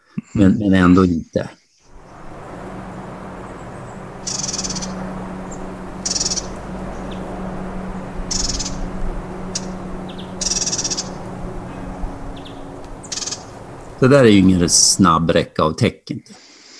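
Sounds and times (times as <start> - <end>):
speech: 0.3 - 1.6, 14.0 - 16.4
bird giving raspy hissing bursts of song: 1.6 - 14.8
steady low hum: 1.9 - 15.2.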